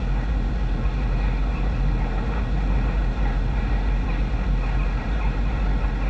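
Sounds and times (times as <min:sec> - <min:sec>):
outdoor ambience: 0:00.0 - 0:06.0.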